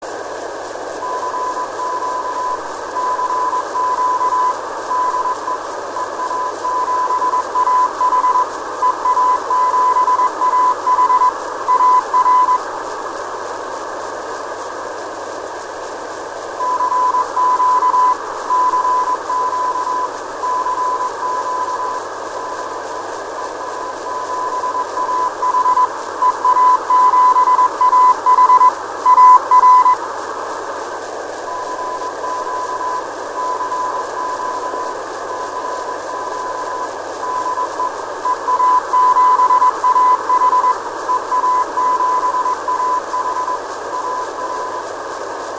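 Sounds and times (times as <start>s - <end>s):
radio beacon signal: 1.0s - 12.6s, 16.6s - 30.0s, 31.5s - 44.9s.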